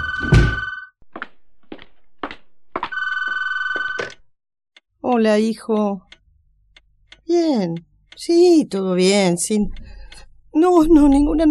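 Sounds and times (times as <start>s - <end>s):
telephone ringing: 0.0s - 0.9s, 2.8s - 4.2s
door shutting: 0.0s - 1.4s
speech: 5.1s - 6.1s, 7.3s - 10.0s, 10.6s - 11.4s.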